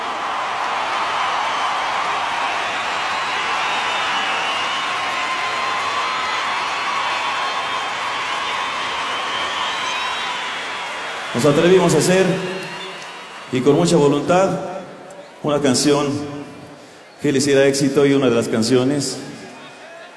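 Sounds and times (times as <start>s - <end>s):
scattered whoops and shouts: 0.0s - 13.6s
audience applause for mariachi: 0.0s - 17.0s
speech: 11.4s - 12.5s, 13.5s - 14.7s, 15.4s - 16.4s, 17.2s - 19.3s.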